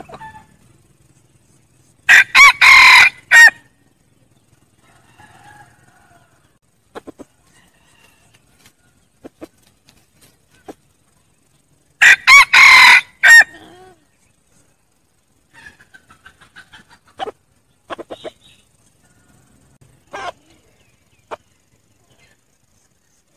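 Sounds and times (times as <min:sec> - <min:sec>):
red junglefowl crowing: 0:02.1 - 0:03.7, 0:04.8 - 0:06.6, 0:07.4 - 0:09.0, 0:12.0 - 0:13.7.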